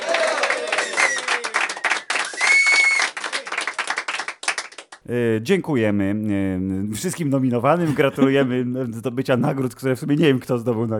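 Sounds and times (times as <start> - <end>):
applause: 0.0 - 5.0
speech: 5.1 - 10.9.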